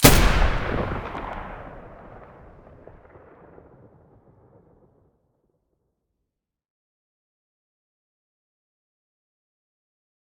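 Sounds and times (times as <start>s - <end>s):
G36 rifle muzzle gunshots: 0.0s - 3.2s.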